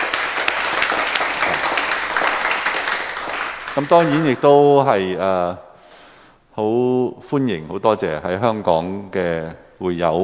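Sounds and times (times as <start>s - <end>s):
audience applause: 0.0s - 4.4s
speech: 3.8s - 5.7s, 6.6s - 10.2s.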